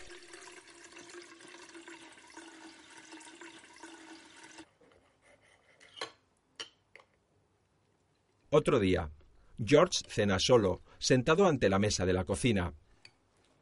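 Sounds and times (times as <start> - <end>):
water running from a tap into a saucepan: 0.0 - 4.7
speech: 8.5 - 12.8.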